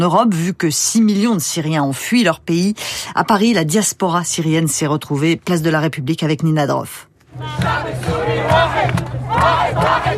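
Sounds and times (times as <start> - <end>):
speech: 0.0 - 10.1
crowd chanting at a rally: 7.4 - 10.1.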